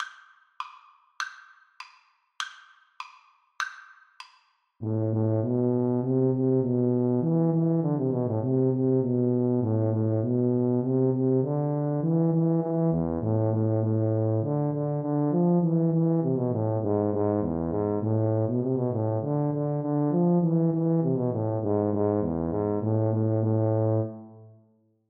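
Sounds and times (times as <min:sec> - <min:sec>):
tuba duet: 0:04.8 - 0:24.6.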